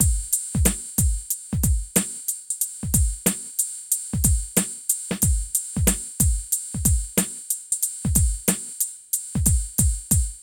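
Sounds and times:
phat beat: 0.0 - 2.2, 2.8 - 3.5, 4.2 - 7.4, 8.0 - 8.8, 9.4 - 10.4.

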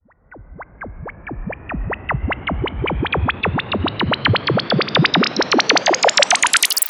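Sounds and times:
rising sweep effect: 0.3 - 6.8.

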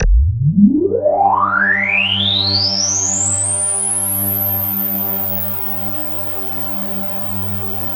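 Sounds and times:
KORG DW8000 vintage synthesizer keyboard: 0.0 - 2.3.

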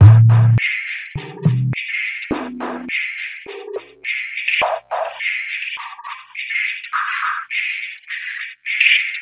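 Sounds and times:
metals loop: 0.0 - 9.2.

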